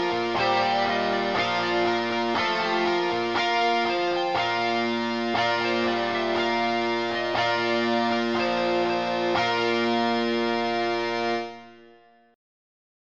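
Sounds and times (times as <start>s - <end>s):
overdrive: 0.0s - 12.0s.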